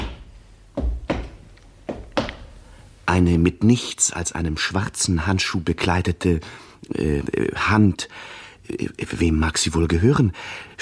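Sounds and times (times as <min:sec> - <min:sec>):
heavy footsteps approaching: 0:00.0 - 0:03.0
faint hiss: 0:00.0 - 0:10.8
speech: 0:03.1 - 0:10.8.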